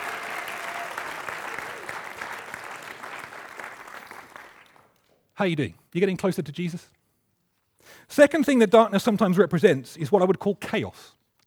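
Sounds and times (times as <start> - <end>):
audience applause: 0.0 - 5.0
speech: 5.4 - 7.0, 7.9 - 11.2.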